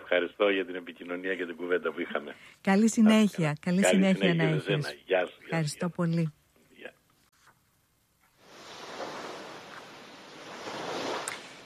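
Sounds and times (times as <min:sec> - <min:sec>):
speech: 0:00.1 - 0:06.4
sea waves: 0:08.4 - 0:11.6.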